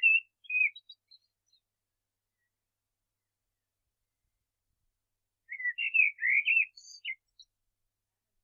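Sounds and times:
common blackbird singing: 0:00.0 - 0:01.7, 0:05.5 - 0:07.5.

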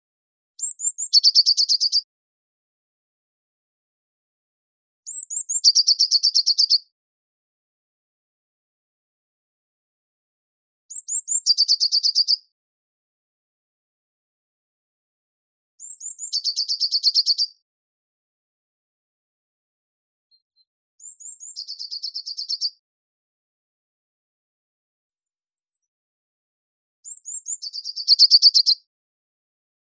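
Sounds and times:
Eurasian blue tit song: 0:00.6 - 0:02.1, 0:05.1 - 0:06.9, 0:10.9 - 0:12.5, 0:15.8 - 0:17.6, 0:20.3 - 0:22.8, 0:25.1 - 0:25.9, 0:27.0 - 0:28.9.

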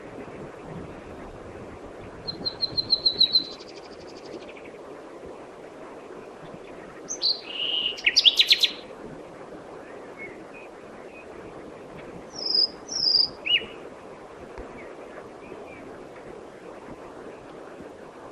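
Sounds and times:
common nightingale singing: 0:02.2 - 0:03.9, 0:07.1 - 0:08.8, 0:12.3 - 0:13.8.

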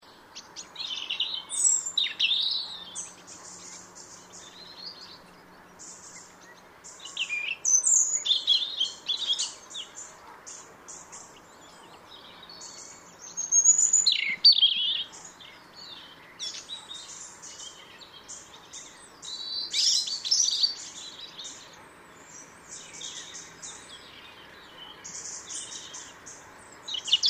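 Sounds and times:
European robin twittering: 0:00.4 - 0:27.2.

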